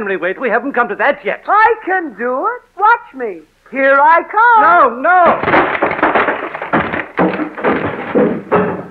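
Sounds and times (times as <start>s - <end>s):
speech: 0.0s - 6.0s
person bumping into a door: 5.4s - 8.8s.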